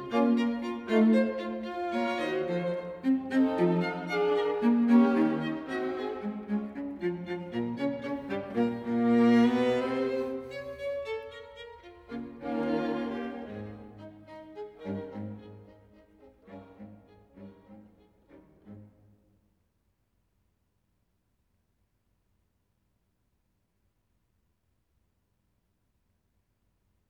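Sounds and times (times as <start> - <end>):
quartet minuet in A-flat major: 0.0 - 17.9.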